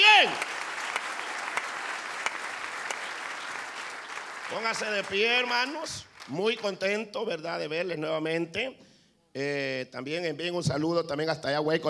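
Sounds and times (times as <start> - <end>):
audience applause: 0.0 - 6.8
speech: 4.5 - 11.8.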